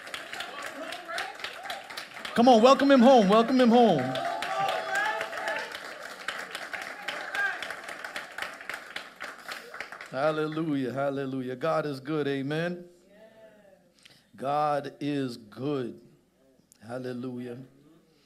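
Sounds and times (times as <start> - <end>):
audience clapping: 0.0 - 10.6
speech: 2.4 - 4.2, 10.2 - 13.0, 14.4 - 16.1, 16.8 - 17.8.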